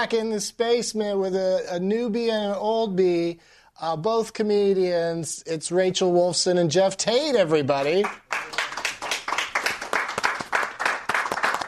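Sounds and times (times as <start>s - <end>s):
speech: 0.0s - 8.6s
audience clapping: 7.7s - 11.6s.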